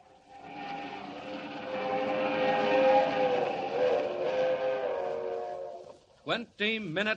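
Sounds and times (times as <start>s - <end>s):
streamliner train rushing through the dark: 0.0s - 5.9s.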